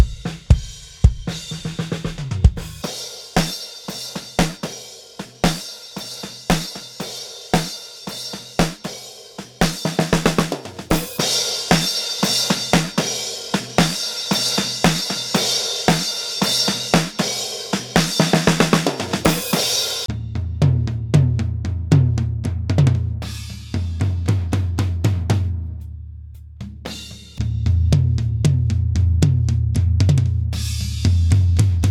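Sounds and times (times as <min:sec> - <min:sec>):
subtle drums: 0:00.0 - 0:31.8.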